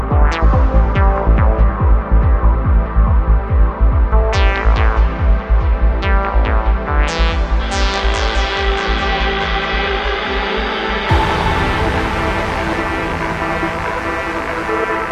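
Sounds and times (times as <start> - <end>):
drums: 0.0 - 15.0
psychedelic progressive trance music with drums: 0.0 - 15.0.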